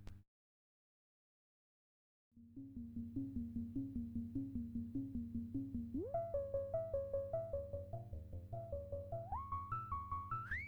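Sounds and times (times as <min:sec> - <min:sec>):
Moog modular synthesizer: 0:02.4 - 0:10.6.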